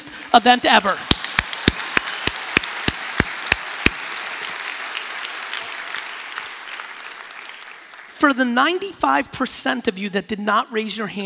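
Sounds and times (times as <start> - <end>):
speech: 0.4 - 1.1, 8.2 - 11.2
hand claps: 1.0 - 8.1.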